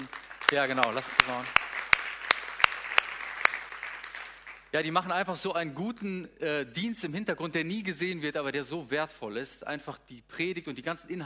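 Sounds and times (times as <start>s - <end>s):
audience applause: 0.0s - 4.7s
speech: 0.5s - 1.6s, 4.7s - 11.2s.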